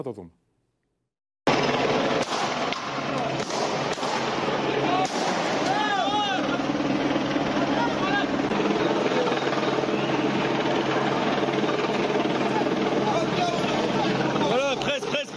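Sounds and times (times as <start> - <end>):
speech: 0.0 - 0.4
protesters' crowd noise: 1.6 - 15.3
gunfire by armed special forces at protesters in Marseille: 2.2 - 4.4, 5.0 - 5.8
people shouting: 3.1 - 14.7.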